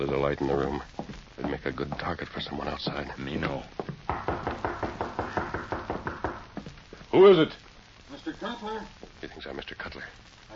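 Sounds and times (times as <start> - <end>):
speech: 0.0 - 3.9, 7.1 - 7.7, 8.4 - 10.4
knocking on the rear door of a house: 3.8 - 6.8.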